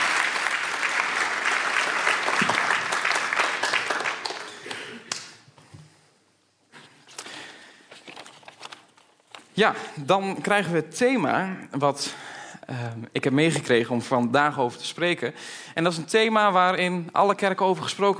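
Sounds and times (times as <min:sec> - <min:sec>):
audience applause for children: 0:00.0 - 0:05.2
speech: 0:09.6 - 0:18.1.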